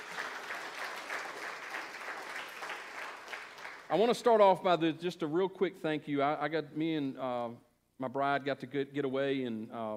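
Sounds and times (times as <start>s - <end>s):
audience applause: 0.0s - 3.9s
speech: 3.9s - 9.9s.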